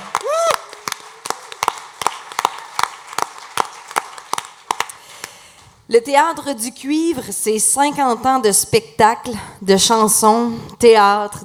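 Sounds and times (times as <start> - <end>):
audience applause: 0.0 - 5.4
speech: 5.9 - 11.4.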